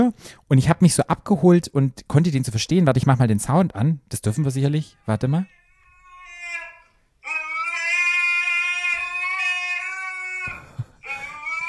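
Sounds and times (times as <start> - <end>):
speech: 0.0 - 5.6
husky dog howling: 5.0 - 11.6.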